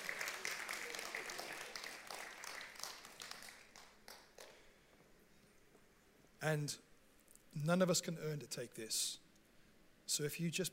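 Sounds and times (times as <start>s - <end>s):
audience slow hand clap: 0.0s - 4.7s
speech: 6.4s - 6.9s, 7.6s - 9.2s, 10.1s - 10.7s.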